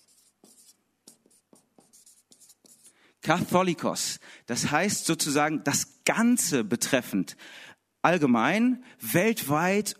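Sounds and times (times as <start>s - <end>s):
pen strokes writing a Greek word by hand: 0.0s - 3.0s
speech: 3.2s - 9.9s.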